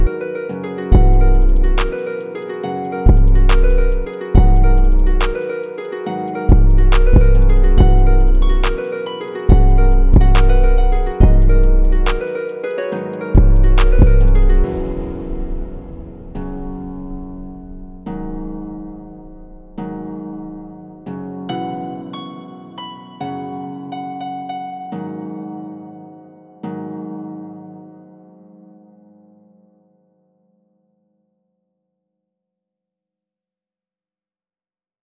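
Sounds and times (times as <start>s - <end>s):
emo beat at 140 BPM: 0.0s - 19.0s.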